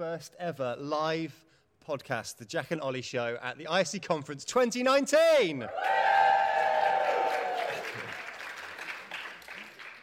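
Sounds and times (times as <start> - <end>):
speech: 0.0 - 6.2
live audience cheering: 5.7 - 9.5
live audience applause: 5.8 - 10.0.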